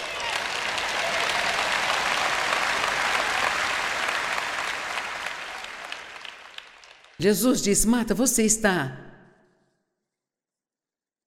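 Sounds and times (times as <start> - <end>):
audience applauding: 0.0 - 7.2
speech: 7.2 - 9.1.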